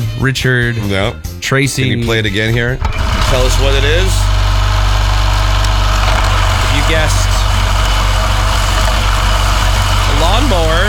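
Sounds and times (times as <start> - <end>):
speech: 0.2 - 4.4, 6.9 - 7.3
gas lawnmower engine running: 2.8 - 10.8.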